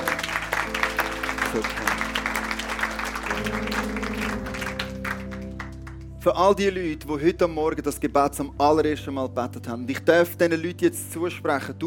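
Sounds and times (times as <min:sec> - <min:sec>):
audience applause: 0:00.0 - 0:06.1
speech: 0:01.5 - 0:01.9, 0:06.2 - 0:11.8.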